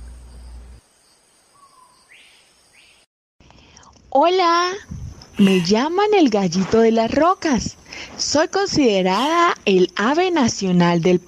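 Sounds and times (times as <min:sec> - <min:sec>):
steady insect-like hiss: 0:00.0 - 0:03.0, 0:03.6 - 0:11.2
oropendola calling, bird of Central and South American tropical forests: 0:01.6 - 0:03.0
speech: 0:04.2 - 0:11.2.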